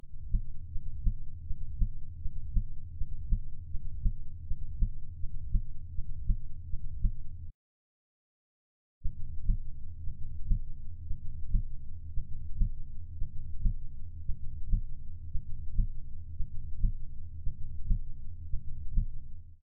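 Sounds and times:
heartbeat: 0.0s - 7.3s, 9.0s - 19.3s.

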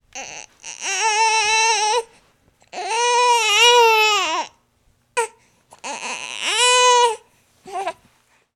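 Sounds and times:
baby crying: 0.1s - 2.1s, 2.7s - 4.6s, 5.2s - 8.0s.

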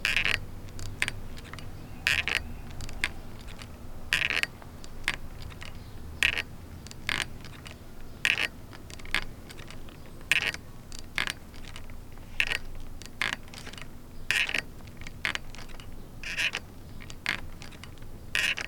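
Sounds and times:
creaky swing set: 0.0s - 18.6s.

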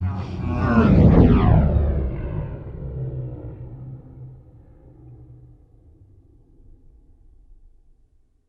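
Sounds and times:
demon passing: 0.0s - 5.7s.

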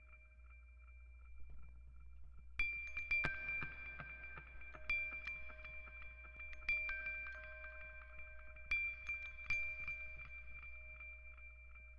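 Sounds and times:
music box: 2.9s - 11.9s.

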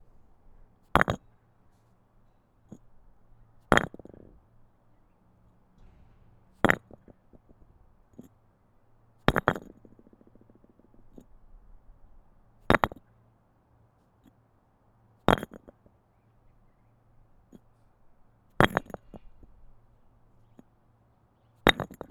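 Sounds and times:
brick falling on brick: 0.9s - 1.2s, 3.7s - 4.4s, 5.8s - 8.3s, 9.2s - 11.2s, 12.7s - 13.0s, 15.3s - 15.8s, 18.6s - 19.2s, 21.7s - 22.1s.

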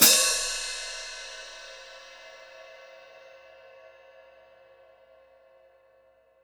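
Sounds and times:
custom hi-hat cymbals foot splash: 0.0s - 1.7s.

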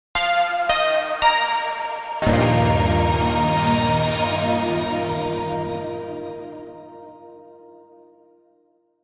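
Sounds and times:
synth stinger: 0.4s - 7.3s.

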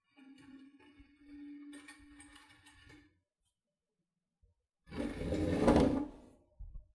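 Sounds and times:
wooden chair scraping along the ground: 5.0s - 6.2s.

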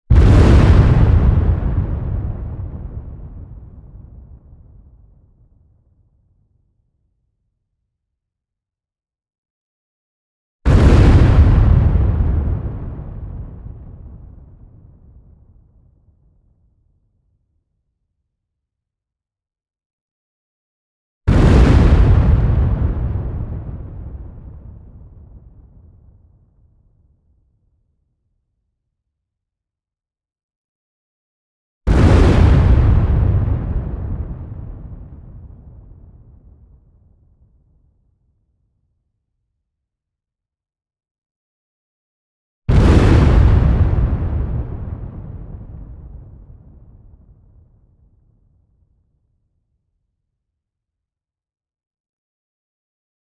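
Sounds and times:
huge explosions with sharp attack: 0.1s - 4.8s, 10.7s - 15.3s, 21.3s - 25.9s, 31.9s - 36.6s, 42.7s - 47.3s.

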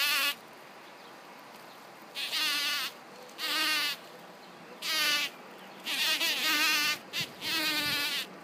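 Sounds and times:
bumblebee buzzing on flowers: 0.0s - 0.4s, 2.2s - 4.0s, 4.8s - 8.3s.

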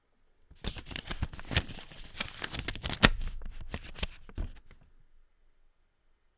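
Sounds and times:
paper money rustling: 0.6s - 4.8s.

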